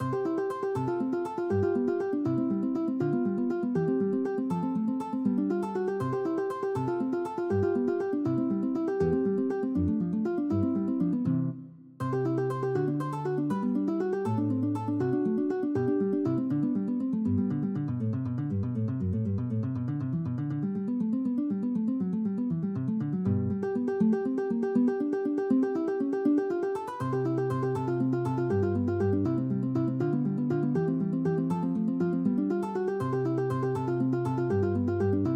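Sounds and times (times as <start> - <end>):
fingerstyle guitar arpeggio study: 0.0 - 35.3.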